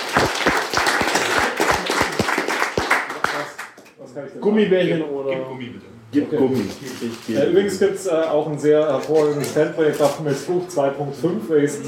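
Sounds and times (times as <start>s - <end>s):
applause clapping: 0.0s - 4.0s
speech: 4.2s - 11.8s.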